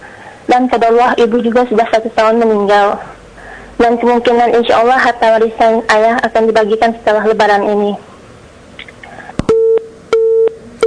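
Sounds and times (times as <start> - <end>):
speech: 0.6 - 3.1, 3.8 - 8.1
telephone busy tone after a call is cut off: 9.5 - 10.8.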